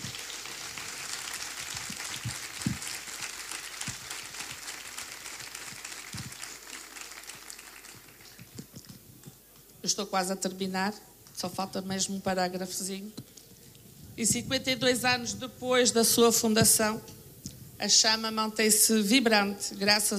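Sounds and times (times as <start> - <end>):
audience round of applause: 0.0 - 8.7
speech: 9.9 - 13.3, 14.2 - 17.2, 17.8 - 20.1.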